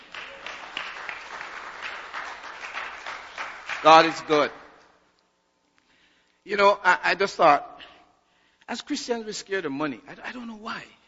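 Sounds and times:
crowd clapping: 0:00.0 - 0:04.9
speech: 0:03.8 - 0:04.6, 0:06.5 - 0:07.8, 0:08.7 - 0:11.0.

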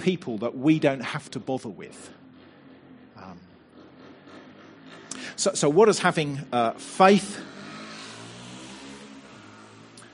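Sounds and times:
speech: 0:00.0 - 0:02.2, 0:05.4 - 0:07.5
motorbike driving past: 0:02.0 - 0:10.1.

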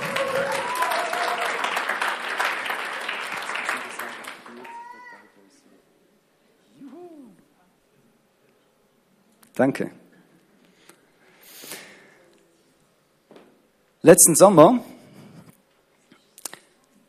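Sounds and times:
audience applause: 0:00.0 - 0:05.2
speech: 0:09.6 - 0:10.0, 0:14.0 - 0:15.0.

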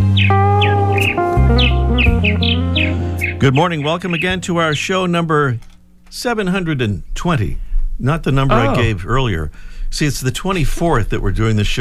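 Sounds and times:
purple martin Progne subis calling: 0:00.0 - 0:05.1
speech: 0:02.2 - 0:11.7.

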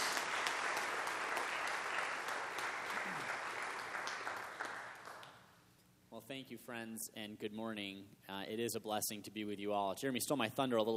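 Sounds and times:
church audience applauding: 0:00.0 - 0:05.4
speech: 0:06.3 - 0:10.9.

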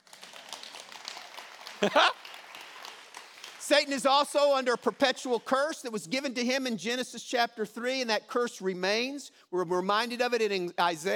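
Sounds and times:
crowd clapping: 0:00.0 - 0:05.9
speech: 0:01.8 - 0:02.2, 0:03.7 - 0:11.1.

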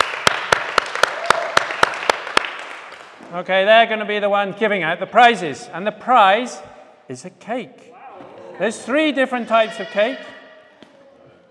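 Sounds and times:
audience applause: 0:00.0 - 0:03.2
speech: 0:03.3 - 0:07.9, 0:08.6 - 0:10.3.

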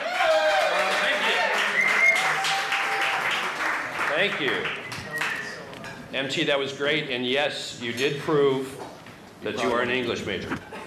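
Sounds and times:
audience applause: 0:00.0 - 0:05.6
speech: 0:04.2 - 0:04.8, 0:06.1 - 0:08.8, 0:09.4 - 0:10.7.

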